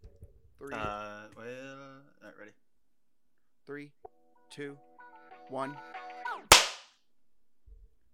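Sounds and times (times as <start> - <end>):
speech: 0.6 - 1.1, 3.7 - 4.9, 5.5 - 6.0
hand clap for syncing audio levels: 6.5 - 6.9.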